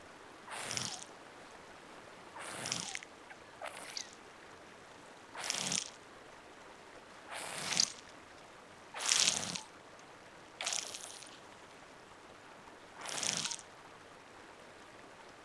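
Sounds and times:
face gel massage: 0.5s - 1.1s, 2.4s - 3.1s, 3.7s - 4.2s, 5.4s - 6.0s, 7.3s - 8.1s, 9.0s - 9.7s, 10.6s - 11.5s, 13.0s - 13.6s.

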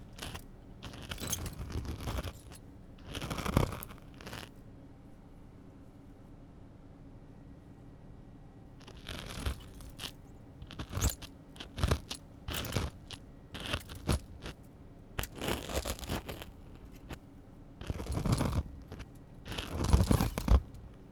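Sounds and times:
ear cleaning in the left ear with tweezers, spoon and spiral tools: 0.0s - 4.5s, 8.8s - 17.2s, 17.8s - 21.1s.

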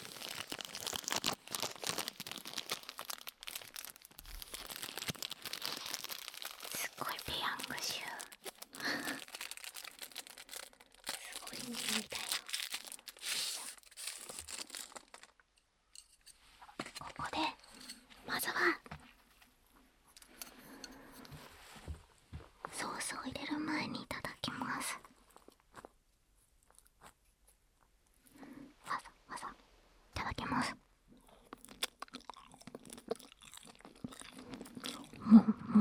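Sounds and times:
disposable wooden chopsticks unwrapped with crinkling and tearing: 0.0s - 16.2s, 31.5s - 35.2s
person whispering softly: 6.7s - 9.3s, 11.1s - 12.5s, 16.9s - 18.9s, 22.7s - 25.1s, 28.5s - 29.6s, 30.2s - 30.8s
speech: 7.5s - 8.1s.

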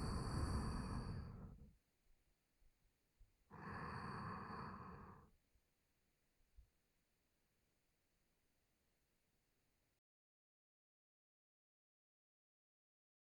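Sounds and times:
sleep breathing through nose, left side: 0.0s - 1.6s, 3.6s - 5.3s.

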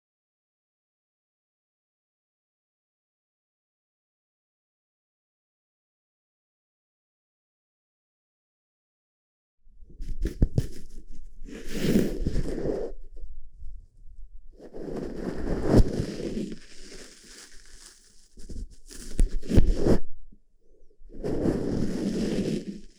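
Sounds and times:
ear brushing in right ear ASMR: 10.2s - 13.0s, 14.6s - 20.1s, 21.1s - 22.9s.

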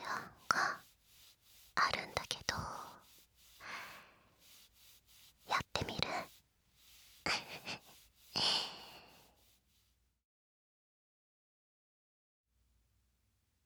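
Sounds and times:
ear licking: 0.0s - 9.3s
hand stroking sounds: 0.0s - 9.9s.

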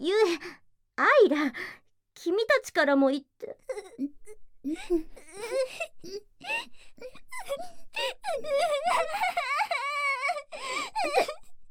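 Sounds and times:
speech: 1.3s - 9.5s
person crying and sobbing: 3.4s - 11.5s.

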